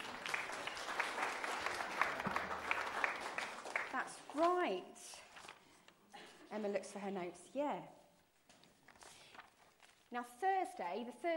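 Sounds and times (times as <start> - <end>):
audience clapping: 0.0 - 4.6
speech: 4.4 - 5.2, 6.5 - 8.0, 10.1 - 11.3.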